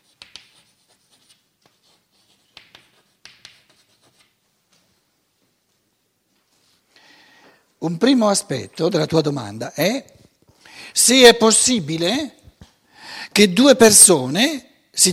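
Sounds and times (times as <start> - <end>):
writing during a lecture: 0.0 - 4.4
speech: 7.8 - 10.2, 11.0 - 12.4, 13.4 - 15.1.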